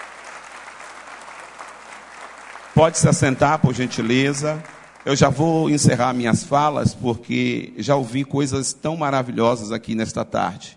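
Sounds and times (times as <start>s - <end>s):
audience applauding: 0.0s - 6.2s
speech: 2.8s - 10.7s.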